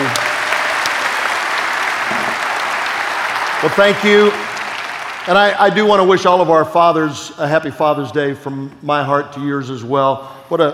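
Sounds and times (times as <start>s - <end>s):
audience applause: 0.0s - 6.1s
speech: 3.6s - 4.5s, 5.2s - 10.7s.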